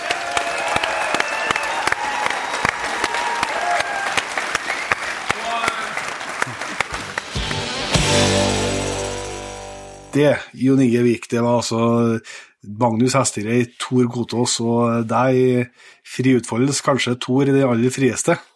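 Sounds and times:
audience applause: 0:00.0 - 0:08.4
speech: 0:10.2 - 0:18.5.

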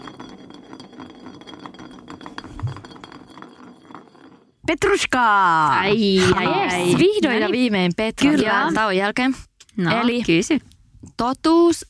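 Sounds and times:
glass bottle spinning on a surface during spin the bottle: 0:00.0 - 0:08.9
speech: 0:04.7 - 0:11.8.

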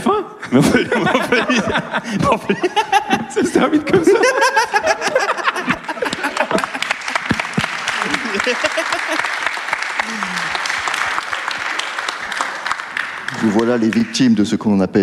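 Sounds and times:
laughter: 0:00.4 - 0:12.7
speech: 0:00.5 - 0:05.3, 0:13.5 - 0:15.0
audience applause: 0:05.0 - 0:14.4.

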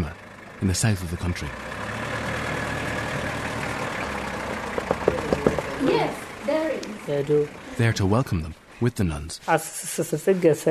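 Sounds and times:
speech: 0:00.0 - 0:01.8, 0:05.8 - 0:10.6
bus engine idling: 0:00.0 - 0:08.9.

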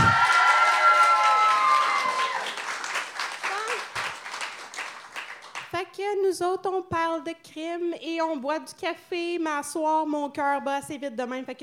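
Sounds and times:
audience applause and cheering: 0:00.0 - 0:05.7
speech: 0:06.2 - 0:11.6.

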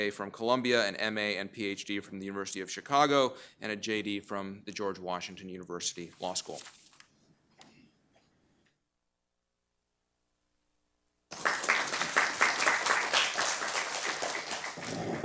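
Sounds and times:
speech: 0:00.0 - 0:06.8
audience applause: 0:11.3 - 0:15.2.

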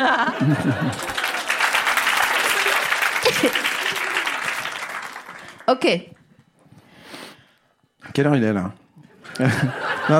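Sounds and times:
speech: 0:00.0 - 0:01.2, 0:03.3 - 0:03.7, 0:05.7 - 0:06.2, 0:08.2 - 0:08.8, 0:09.4 - 0:10.1
laughter: 0:00.0 - 0:05.3, 0:09.1 - 0:10.1
applause: 0:00.4 - 0:05.8.

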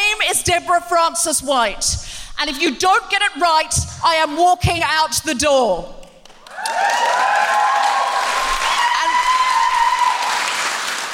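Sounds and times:
speech: 0:00.6 - 0:06.0
group applauding: 0:06.2 - 0:11.1
high cheers and whoops: 0:06.4 - 0:11.0.

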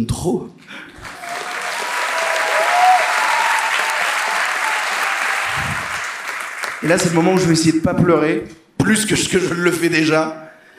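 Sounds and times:
speech: 0:00.0 - 0:01.1, 0:06.8 - 0:10.5
audience applause: 0:01.0 - 0:07.6.

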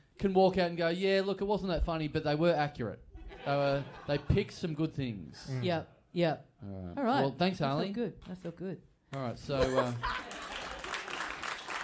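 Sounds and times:
speech: 0:00.2 - 0:10.3
laughter: 0:03.2 - 0:04.7, 0:09.5 - 0:11.2
reluctant audience applause: 0:09.9 - 0:11.8.

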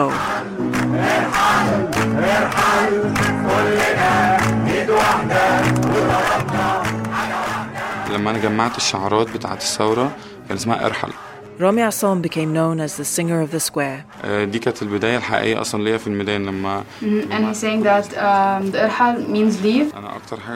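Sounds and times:
large protest crowd chanting in unison: 0:00.0 - 0:11.9
speech: 0:08.2 - 0:20.5.

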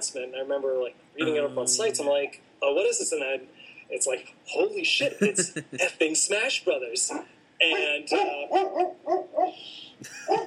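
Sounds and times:
speech: 0:00.1 - 0:10.4
laughter: 0:01.2 - 0:02.1, 0:04.9 - 0:06.2, 0:10.0 - 0:10.4
dog barking: 0:07.1 - 0:09.6, 0:10.3 - 0:10.4.

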